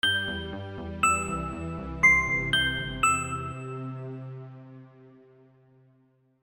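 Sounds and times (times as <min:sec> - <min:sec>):
chime: 0:00.0 - 0:04.1.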